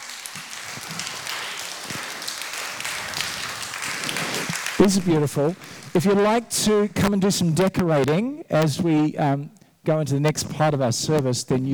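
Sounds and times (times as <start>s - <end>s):
audience clapping: 0.0s - 8.2s
speech: 0.4s - 1.3s, 4.8s - 11.7s.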